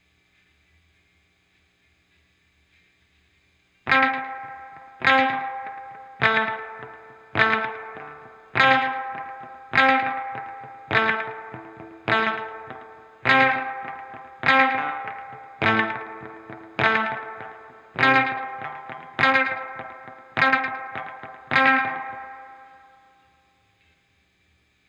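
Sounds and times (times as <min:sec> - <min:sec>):
guitar volume swell: 0:03.9 - 0:23.0.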